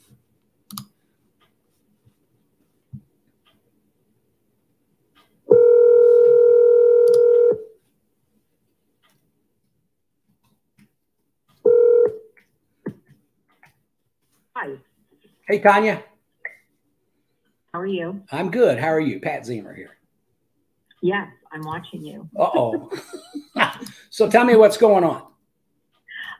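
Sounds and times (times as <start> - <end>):
steady buzzy electronic telephone tone: 5.5 - 7.8, 11.7 - 12.2
speech: 15.5 - 16.1, 17.9 - 20.0, 21.0 - 25.3
laughter: 22.4 - 24.0.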